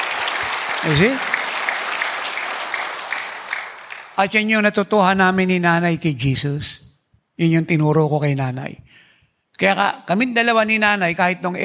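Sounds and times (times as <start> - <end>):
crowd applauding: 0.0 - 4.4
speech: 0.8 - 1.3, 4.2 - 6.8, 7.4 - 8.8, 9.6 - 11.6.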